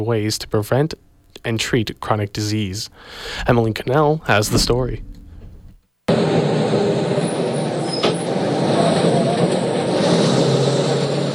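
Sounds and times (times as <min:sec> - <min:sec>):
speech: 0:00.0 - 0:05.1
bus engine running: 0:06.1 - 0:11.3.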